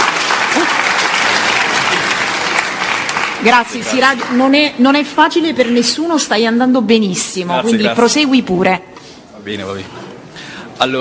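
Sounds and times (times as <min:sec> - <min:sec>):
audience applause of encouragement: 0:00.0 - 0:04.6
speech: 0:03.4 - 0:10.1, 0:10.8 - 0:11.0.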